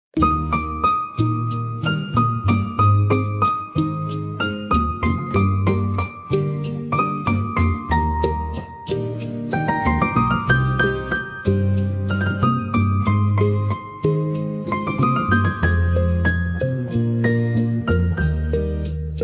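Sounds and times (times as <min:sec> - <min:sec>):
piano ringtone: 0:00.2 - 0:19.2.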